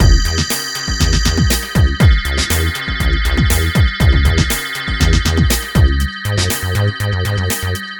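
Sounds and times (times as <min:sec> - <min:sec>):
groovebox beat: 0:00.0 - 0:07.9.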